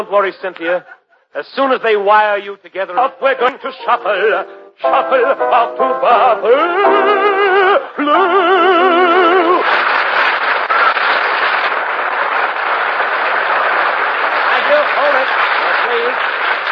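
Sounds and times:
speech: 0:00.0 - 0:09.0
large crowd applause: 0:09.0 - 0:16.7.

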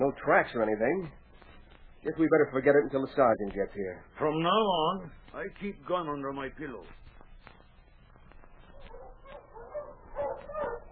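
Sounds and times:
speech: 0:00.0 - 0:01.3, 0:02.0 - 0:07.0
sled dog team barking and whimpering: 0:08.8 - 0:10.9.

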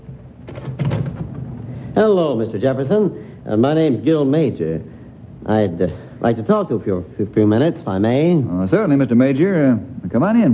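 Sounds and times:
door opening with latch thunk: 0:00.4 - 0:01.6
speech: 0:02.0 - 0:10.5.

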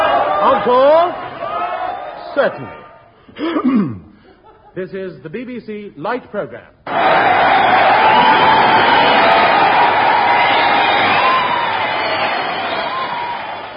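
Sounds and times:
speech: 0:00.4 - 0:01.3, 0:02.4 - 0:04.0, 0:04.8 - 0:09.0
audience applause: 0:06.9 - 0:13.7.

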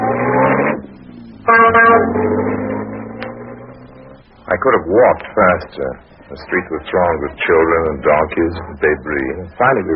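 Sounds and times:
taxi horn honking: 0:00.0 - 0:04.2
old taxi engine rumbling while driving: 0:00.0 - 0:09.9
speech: 0:04.6 - 0:09.9.

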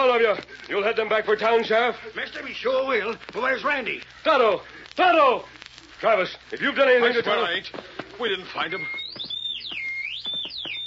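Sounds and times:
speech: 0:00.1 - 0:09.3
whistle gliding in pitch: 0:08.6 - 0:10.8.

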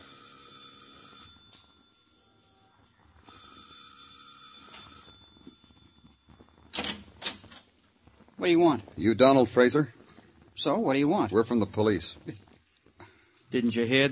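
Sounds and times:
doorbell ringing: 0:00.0 - 0:06.7
speech: 0:08.4 - 0:10.0, 0:10.6 - 0:12.4, 0:13.5 - 0:14.1.

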